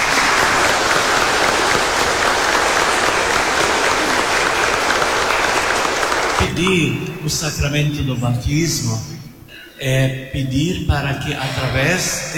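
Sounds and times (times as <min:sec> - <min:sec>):
applause for the children and parents: 0:00.0 - 0:06.8
speech: 0:06.6 - 0:09.2, 0:09.8 - 0:12.3.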